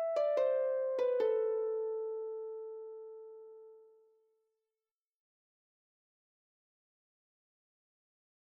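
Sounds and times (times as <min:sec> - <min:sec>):
harp tune: 0:00.0 - 0:03.4.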